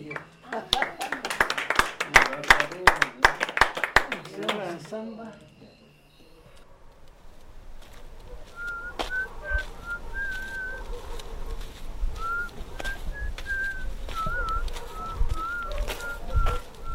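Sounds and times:
laughter: 0.1s - 4.8s
person whistling a tune: 8.5s - 10.8s, 12.2s - 16.9s.

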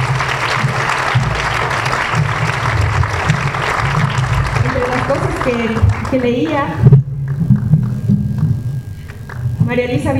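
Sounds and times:
audience applause: 0.0s - 9.5s
speech: 5.5s - 7.0s, 9.7s - 10.1s.

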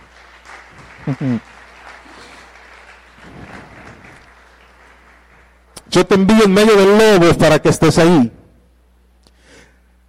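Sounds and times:
church audience applauding: 0.0s - 6.5s
speech: 1.1s - 1.6s, 6.0s - 8.4s.

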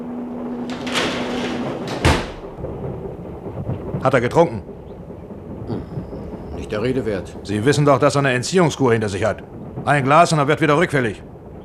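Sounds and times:
door being closed: 0.4s - 2.7s
speech: 4.0s - 4.7s, 6.7s - 11.3s.

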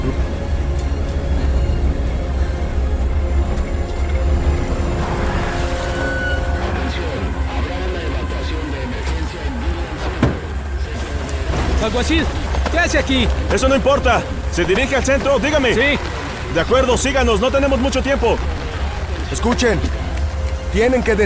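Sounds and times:
truck engine rumbling: 0.0s - 21.2s
voices: 6.6s - 21.2s
speech: 11.9s - 18.6s, 19.3s - 20.0s, 20.7s - 21.2s.

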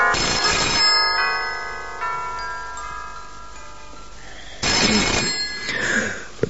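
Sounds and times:
old-fashioned telephone bell ringing: 0.1s - 1.9s, 4.6s - 6.3s.

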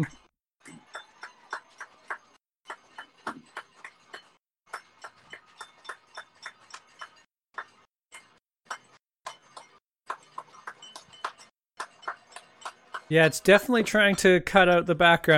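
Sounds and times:
neighbours applauding outside: 10.4s - 14.2s
speech: 13.1s - 15.3s.

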